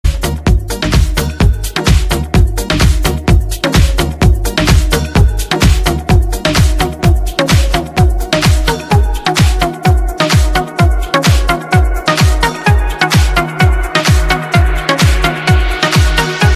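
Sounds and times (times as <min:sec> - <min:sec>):
Morocco house mix ringtone: 0:00.1 - 0:16.5.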